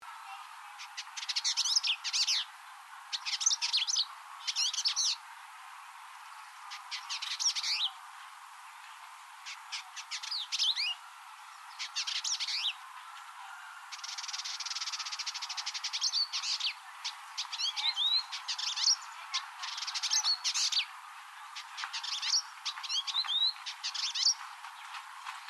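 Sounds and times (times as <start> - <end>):
Village indigobird Vidua chalybeata singing chattering bursts: 0.8 - 2.5, 3.1 - 5.2, 6.7 - 8.0, 9.4 - 11.0, 11.7 - 12.8, 13.9 - 20.9, 21.6 - 25.4.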